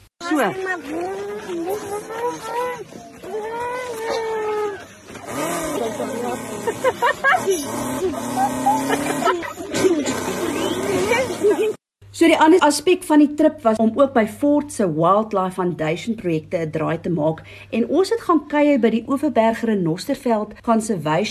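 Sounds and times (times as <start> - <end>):
speech: 0.3 - 10.6, 11.4 - 21.2
child imitating a revving Ford Mustang engine: 0.3 - 11.8
laughter: 0.3 - 11.8.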